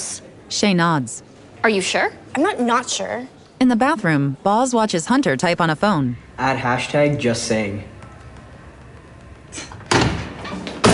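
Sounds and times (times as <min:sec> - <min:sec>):
speech: 0:00.5 - 0:07.9
body slammed against bathroom stall door: 0:09.6 - 0:10.9.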